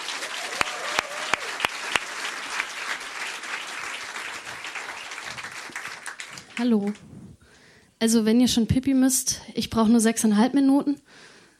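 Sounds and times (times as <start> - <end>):
crowd applause: 0.0 - 7.0
faint whoops: 0.3 - 1.7
speech: 6.6 - 7.1, 8.0 - 11.3.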